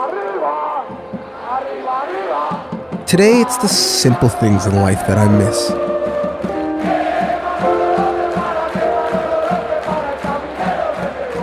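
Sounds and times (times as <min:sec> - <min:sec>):
large crowd of sports fans singing in unison: 0:00.0 - 0:11.4
rhythmic thumping beat: 0:02.5 - 0:04.5, 0:05.2 - 0:11.4
speech: 0:03.1 - 0:05.9.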